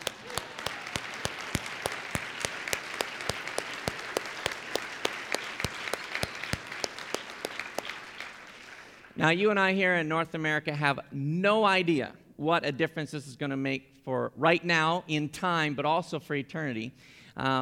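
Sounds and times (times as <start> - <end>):
audience applause: 0.0 - 9.2
speech: 9.2 - 17.6.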